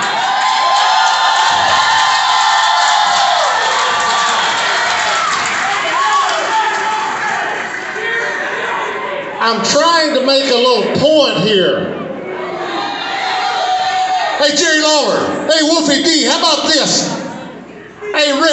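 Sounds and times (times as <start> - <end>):
shouts and whoops: 0.0 - 9.1, 12.4 - 14.4
large crowd cheering and clapping: 0.0 - 9.4, 12.4 - 14.4
speech: 9.5 - 12.0, 14.4 - 17.2, 18.2 - 18.5.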